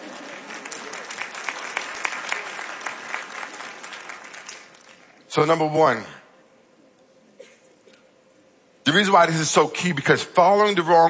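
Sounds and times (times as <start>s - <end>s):
audience clapping: 0.0s - 5.3s
speech: 5.3s - 6.2s, 8.9s - 11.0s.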